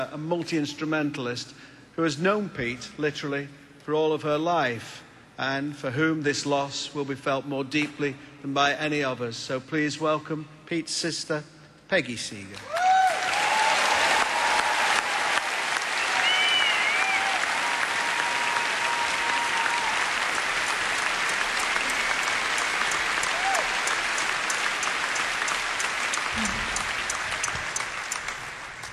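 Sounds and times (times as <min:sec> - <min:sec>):
speech: 0:00.0 - 0:12.8
large audience applause: 0:12.6 - 0:28.9.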